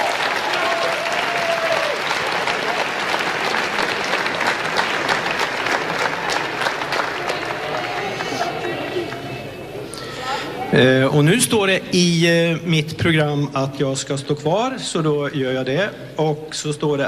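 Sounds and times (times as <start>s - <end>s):
audience applause: 0.0s - 9.9s
speech: 10.8s - 17.0s.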